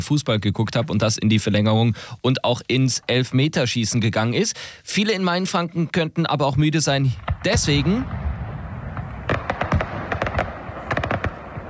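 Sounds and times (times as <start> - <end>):
speech: 0.0 - 8.3
opening fireworks display explosions at the Kiliani: 7.1 - 11.6.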